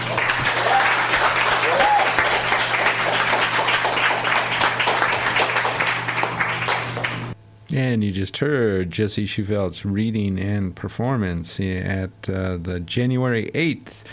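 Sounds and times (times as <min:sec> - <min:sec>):
audience applause: 0:00.0 - 0:07.4
speech: 0:07.8 - 0:14.1.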